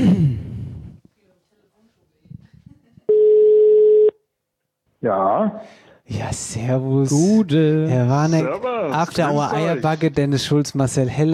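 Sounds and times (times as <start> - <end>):
telephone call ringing tone: 3.1 - 4.2
speech: 5.0 - 11.3.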